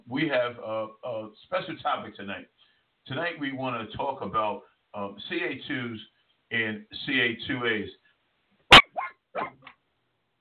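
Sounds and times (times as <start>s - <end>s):
speech: 0.1s - 8.0s, 9.3s - 9.7s
dog barking: 8.7s - 9.6s.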